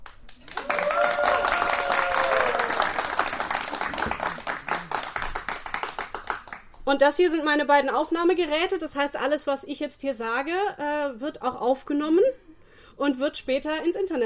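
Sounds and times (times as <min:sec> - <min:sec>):
live audience applause: 0:00.3 - 0:06.8
person cheering: 0:00.5 - 0:03.3
speech: 0:06.9 - 0:14.2.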